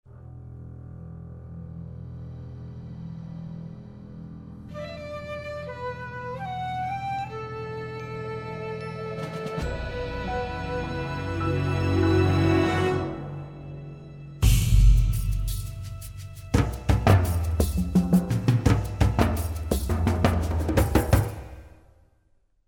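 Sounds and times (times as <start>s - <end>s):
music: 0.0s - 22.6s.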